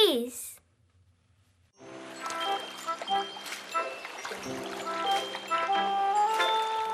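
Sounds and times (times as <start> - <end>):
speech: 0.1 - 0.5
running water for washing hands and face: 1.9 - 6.9.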